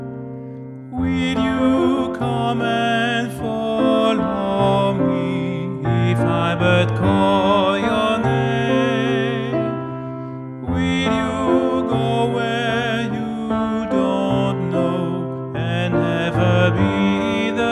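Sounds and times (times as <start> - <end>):
baritone singing: 0.9 - 17.7.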